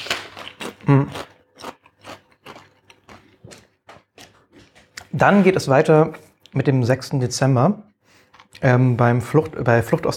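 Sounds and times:
crunching Hungarian-style paprika-flavoured potato chips: 0:00.0 - 0:05.0
speech: 0:05.2 - 0:07.9, 0:08.6 - 0:10.1.

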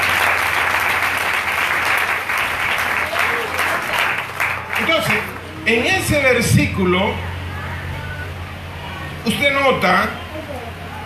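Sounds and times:
audience applauding: 0:00.0 - 0:05.7
speech: 0:05.7 - 0:07.3, 0:09.2 - 0:10.8.

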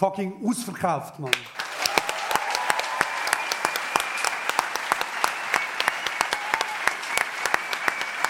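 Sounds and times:
speech: 0:00.0 - 0:01.6
huge audience applause: 0:01.3 - 0:08.2
faint cheering: 0:01.6 - 0:08.2.

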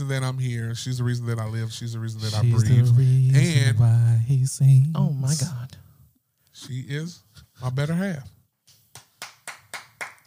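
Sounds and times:
speech: 0:00.1 - 0:05.8, 0:06.6 - 0:08.4
hand claps: 0:08.7 - 0:10.2.

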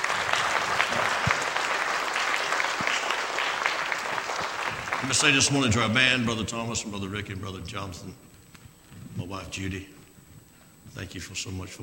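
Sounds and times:
audience clapping: 0:00.0 - 0:06.3
speech: 0:05.0 - 0:08.3, 0:09.3 - 0:10.0, 0:11.0 - 0:11.8.

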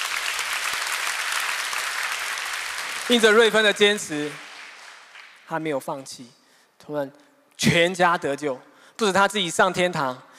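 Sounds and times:
audience applauding: 0:00.0 - 0:05.5
speech: 0:03.1 - 0:04.4, 0:05.5 - 0:10.3.

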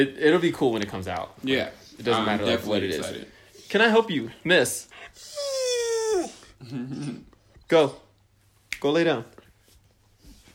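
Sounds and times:
speech: 0:00.0 - 0:05.6, 0:06.2 - 0:08.0, 0:08.8 - 0:09.4
dog whining: 0:05.0 - 0:07.4.

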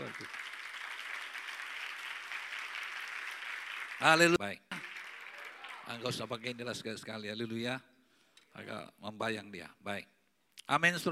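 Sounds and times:
audience applause: 0:00.0 - 0:06.7
speech: 0:04.0 - 0:04.6, 0:05.9 - 0:07.9, 0:08.6 - 0:11.1.

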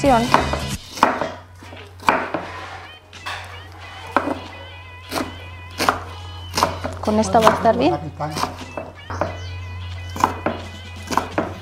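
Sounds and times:
speech: 0:00.0 - 0:00.5, 0:07.1 - 0:08.5
knife finely chopping an onion on a board: 0:00.2 - 0:02.6, 0:04.1 - 0:04.5, 0:05.1 - 0:09.4, 0:10.1 - 0:11.6.

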